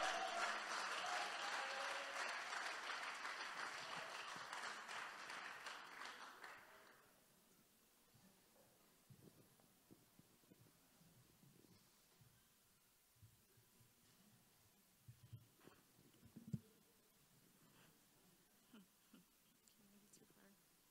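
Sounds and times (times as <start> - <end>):
round of applause: 0.0 - 7.1.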